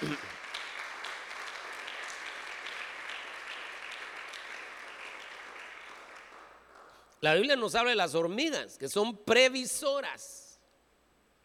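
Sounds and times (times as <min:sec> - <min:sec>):
audience applause: 0:00.0 - 0:07.0
speech: 0:07.2 - 0:10.4.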